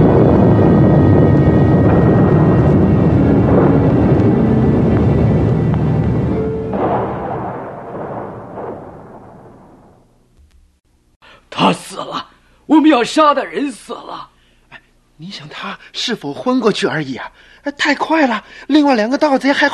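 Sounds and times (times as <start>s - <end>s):
thunder rumbling: 0.0s - 10.3s
speech: 13.0s - 14.3s, 15.2s - 19.7s.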